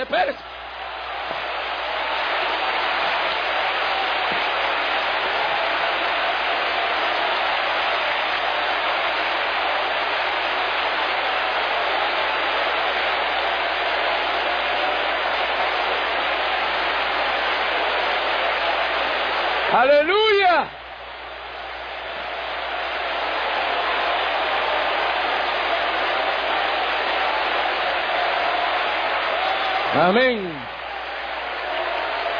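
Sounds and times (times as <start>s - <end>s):
audience applauding: 0.0s - 32.3s.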